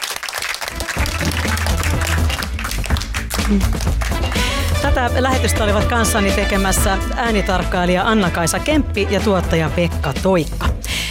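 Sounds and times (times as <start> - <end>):
audience applause: 0.0 - 4.9
speech: 3.5 - 3.9, 4.8 - 10.6.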